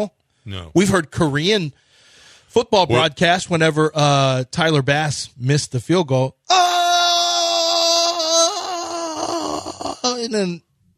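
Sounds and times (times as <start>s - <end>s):
speech: 0.0s - 1.8s, 2.5s - 6.8s, 10.2s - 10.7s
person screaming: 6.5s - 10.4s.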